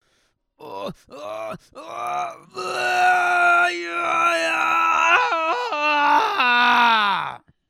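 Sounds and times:
person shouting: 1.2 - 7.4.

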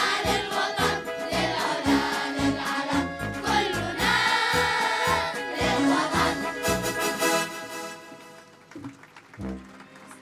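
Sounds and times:
kids chorus singing the national anthem: 0.0 - 7.9.

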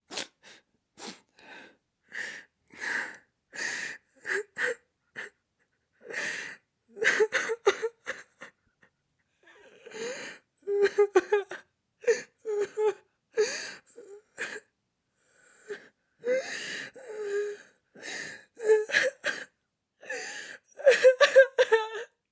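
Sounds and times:
woman sobbing: 4.2 - 14.6, 18.5 - 22.2.

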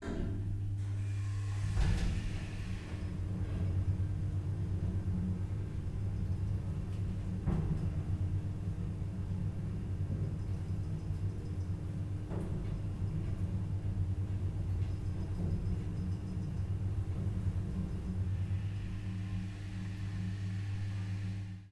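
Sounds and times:
elevator: 0.0 - 21.7.

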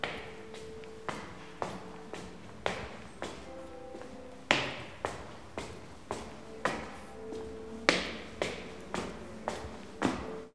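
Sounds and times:
slow footsteps walking upstairs: 0.0 - 10.5.

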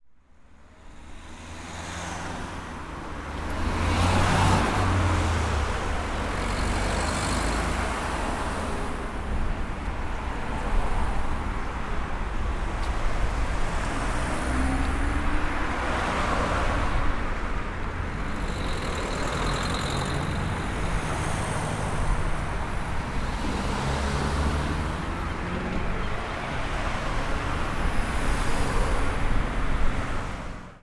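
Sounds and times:
street cars passing by: 0.3 - 30.8.

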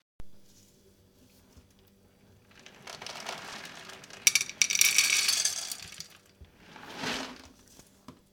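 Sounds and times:
dog food pouring: 2.4 - 7.7.

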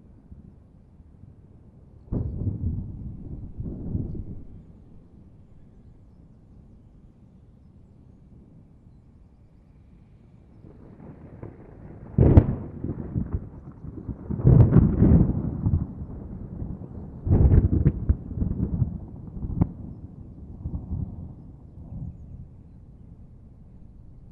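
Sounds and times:
violent thunderstorm: 2.1 - 5.3, 10.6 - 24.2.

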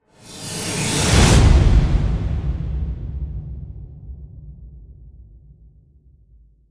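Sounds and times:
epic whoosh for a final title card: 0.1 - 4.1.

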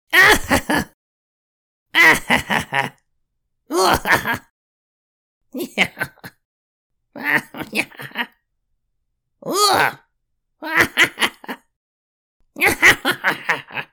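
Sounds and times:
goblin laughs and giggles: 0.2 - 1.0, 2.0 - 3.0, 3.7 - 4.5, 5.6 - 6.4, 7.2 - 8.4, 9.5 - 10.0, 10.6 - 11.7, 12.6 - 13.9.

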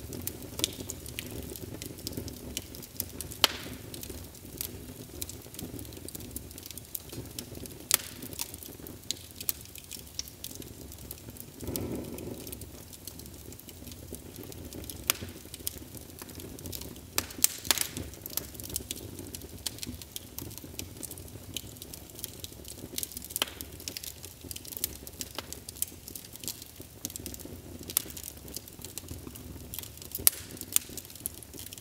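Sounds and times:
fire ambience: 0.0 - 31.7.

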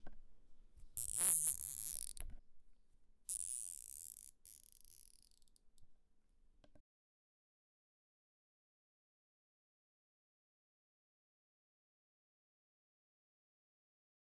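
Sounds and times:
cable tie: 0.9 - 2.2, 3.3 - 5.6.

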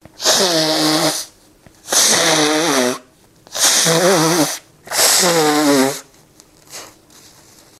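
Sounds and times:
person blowing nose: 0.2 - 6.1.

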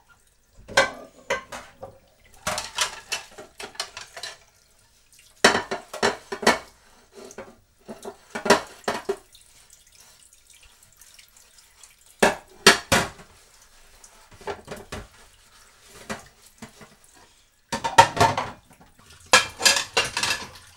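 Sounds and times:
plates clattering while doing the dishes: 0.6 - 4.5, 5.4 - 6.7, 7.3 - 9.2, 12.2 - 13.3, 14.4 - 15.2, 17.7 - 20.7.

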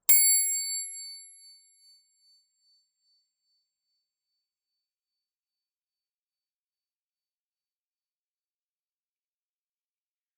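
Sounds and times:
bike bell: 0.1 - 1.6.

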